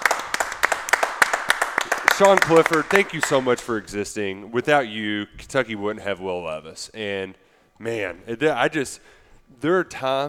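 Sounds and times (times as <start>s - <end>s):
audience applause: 0.0s - 3.6s
speech: 2.2s - 10.2s.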